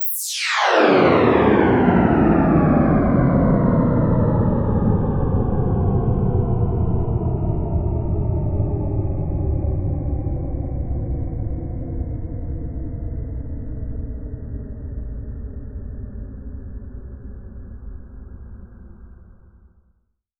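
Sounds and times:
downward sweep effect: 0:00.0 - 0:11.9.

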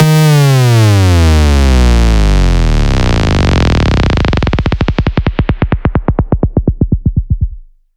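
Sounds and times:
sub bass: 0:00.0 - 0:07.8.

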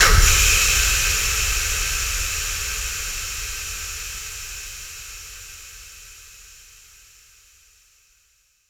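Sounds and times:
reverb atmospheres: 0:00.0 - 0:01.8.

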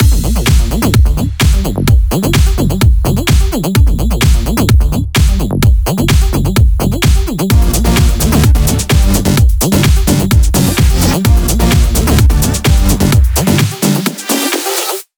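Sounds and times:
128 BPM music mix: 0:00.0 - 0:15.0.

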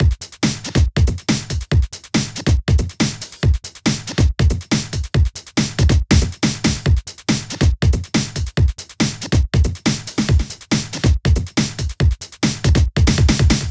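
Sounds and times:
breakbeat drum loop at 140 BPM: 0:00.0 - 0:13.6.

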